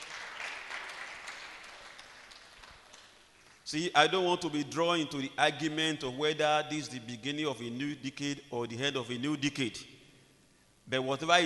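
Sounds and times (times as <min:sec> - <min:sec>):
crowd audience clapping: 0:00.0 - 0:03.6
speech: 0:03.7 - 0:09.9, 0:10.9 - 0:11.4.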